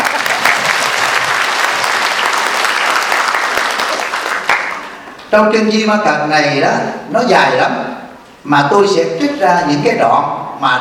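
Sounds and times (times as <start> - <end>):
audience applause at a Buddhist sutra lecture: 0.0 - 5.0
speech: 5.3 - 7.8, 8.4 - 10.8.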